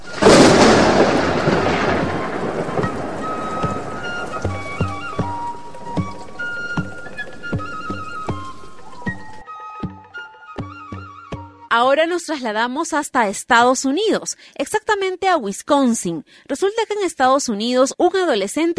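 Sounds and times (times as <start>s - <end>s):
thunder: 0.0s - 7.8s
speech: 11.8s - 18.7s.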